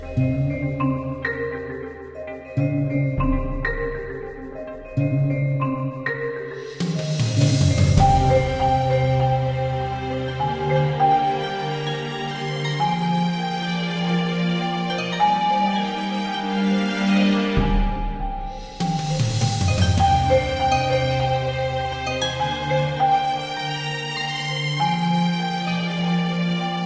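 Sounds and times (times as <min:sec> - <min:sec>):
rough draft music piece: 0:00.0 - 0:26.8.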